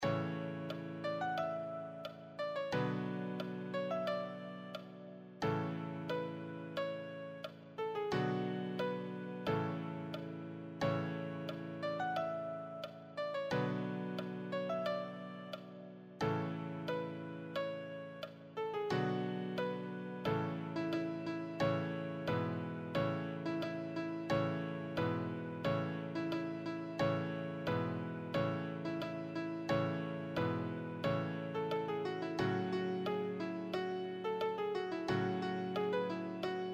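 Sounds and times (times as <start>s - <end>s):
easy solo piano: 0.0s - 36.7s.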